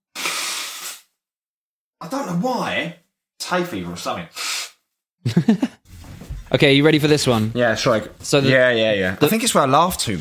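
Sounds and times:
nose blowing: 0.1 - 1.2, 4.3 - 4.8
speech: 2.0 - 4.4, 5.2 - 5.8, 6.5 - 10.2
laughter: 5.2 - 5.8.

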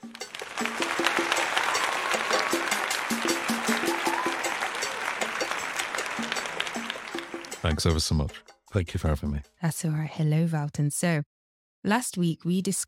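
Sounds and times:
audience applause for the author: 0.0 - 8.0
speech: 7.8 - 12.8.

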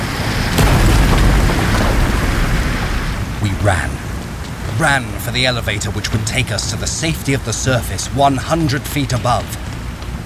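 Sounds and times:
sea water roaring through tunnels: 0.0 - 10.2
speech: 3.6 - 4.0, 4.8 - 9.7.

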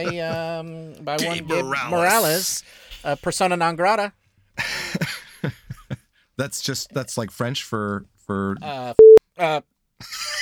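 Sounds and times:
speech: 0.0 - 5.6, 6.4 - 10.3
censor bleep over a swear word: 9.0 - 9.2.

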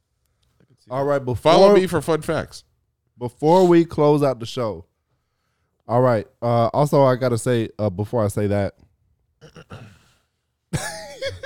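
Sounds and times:
speech: 0.8 - 4.9, 5.9 - 8.8
throat clearing: 9.4 - 10.1.

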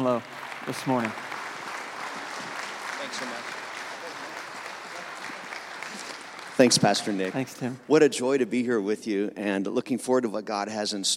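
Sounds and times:
speech: 0.0 - 1.3, 3.1 - 3.6, 6.6 - 11.1
audience applause welcoming a guest speaker at a church service: 0.0 - 7.8.

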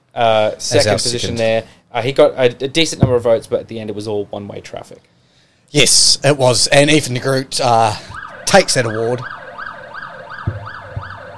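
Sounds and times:
speech: 0.2 - 5.1, 5.7 - 9.4
low thumps: 2.9 - 3.4, 10.3 - 11.3
police siren wailing: 8.0 - 11.3.

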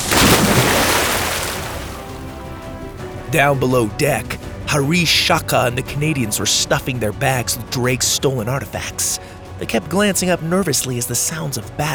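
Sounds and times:
wooden ship's mast splitting and falling: 0.0 - 2.0
speech: 3.3 - 11.9.

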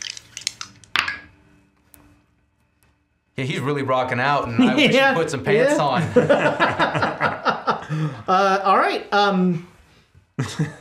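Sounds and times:
dice being rolled: 0.0 - 1.3
speech: 3.4 - 7.2, 7.9 - 9.7, 10.4 - 10.7
laughter: 4.5 - 8.3, 10.4 - 10.7.

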